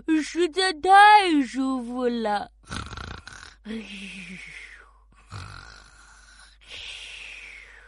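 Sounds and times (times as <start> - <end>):
speech: 0.2 - 2.9, 3.6 - 4.6
pig snoring while sunbathing: 2.6 - 3.6, 5.2 - 6.5.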